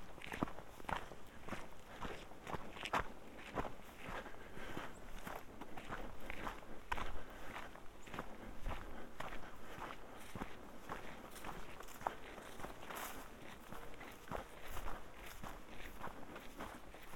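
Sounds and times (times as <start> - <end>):
footsteps crunching on the Colorado Trail: 0.0 - 17.1.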